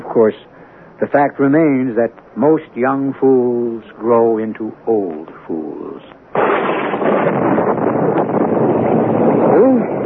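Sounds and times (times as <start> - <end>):
speech: 0.2 - 6.1
wind of a storm: 5.1 - 10.0
thunder of a bad storm: 6.4 - 10.0.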